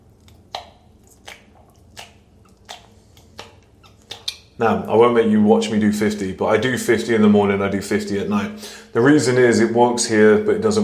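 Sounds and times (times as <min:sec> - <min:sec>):
chewing on a jaw exerciser device: 0:00.0 - 0:04.6
speech: 0:04.6 - 0:10.8.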